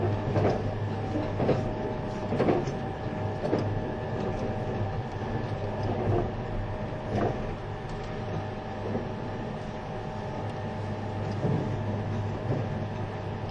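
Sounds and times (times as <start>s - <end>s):
E257 series train rumble: 0.0s - 13.5s.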